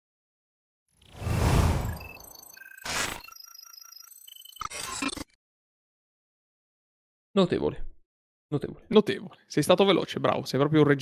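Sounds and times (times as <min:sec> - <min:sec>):
shorter swish: 0:01.2 - 0:02.2
swelling whoosh of a podcast transition: 0:01.2 - 0:02.3
bright electronic beeps and chime tones: 0:01.2 - 0:04.6
speech: 0:07.4 - 0:07.9, 0:08.5 - 0:11.0.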